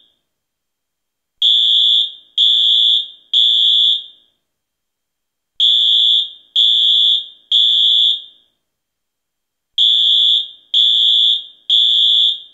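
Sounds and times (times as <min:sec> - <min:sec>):
fire alarm: 0:01.4 - 0:04.4, 0:05.6 - 0:08.6, 0:09.8 - 0:12.5.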